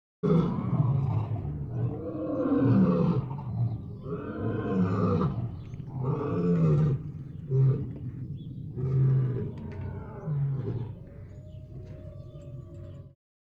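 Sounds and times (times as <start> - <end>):
lion moaning: 0.3 - 13.2.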